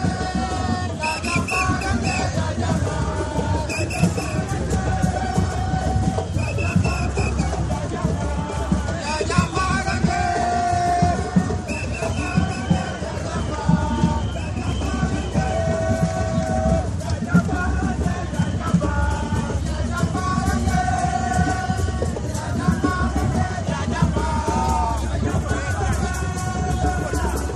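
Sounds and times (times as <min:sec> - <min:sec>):
drums at an anti-racist demonstration: 0:00.0 - 0:27.5
people shouting at an anti-racist demonstration: 0:00.0 - 0:27.5
whistles at an anti-racist demonstration: 0:01.0 - 0:02.5, 0:03.6 - 0:04.5, 0:06.2 - 0:07.6, 0:11.6 - 0:16.8.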